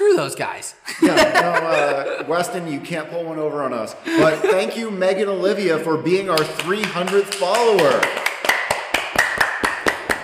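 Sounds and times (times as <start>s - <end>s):
speech: 0.2s - 8.2s
laughter: 0.9s - 2.7s, 4.1s - 5.0s
hand clapping: 6.3s - 10.2s.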